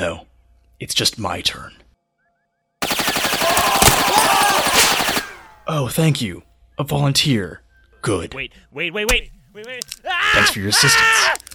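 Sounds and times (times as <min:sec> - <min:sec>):
speech: 0:00.0 - 0:01.8, 0:05.7 - 0:11.4
gunfire spraying bullets at wall and door: 0:02.8 - 0:05.7.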